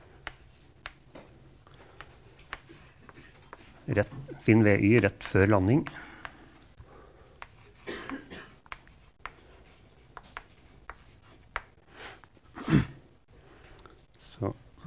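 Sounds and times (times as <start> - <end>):
drawing on paper: 0.0 - 6.4, 8.5 - 12.4
speech: 3.9 - 6.1.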